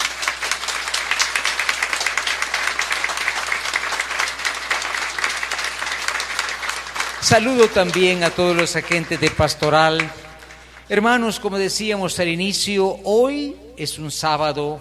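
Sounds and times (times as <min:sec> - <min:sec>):
audience applauding: 0:00.0 - 0:10.9
speech: 0:07.2 - 0:10.2, 0:10.9 - 0:14.8.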